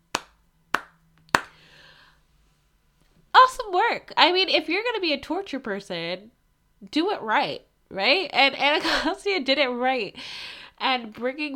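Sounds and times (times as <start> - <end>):
hand claps: 0.1 - 1.6
speech: 3.7 - 11.5.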